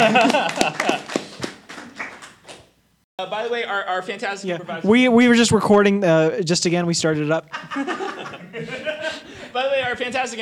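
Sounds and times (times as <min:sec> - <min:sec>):
laughter: 0:00.0 - 0:01.5, 0:07.5 - 0:09.8
audience applause: 0:00.0 - 0:02.6
speech: 0:03.4 - 0:08.8, 0:09.6 - 0:10.4.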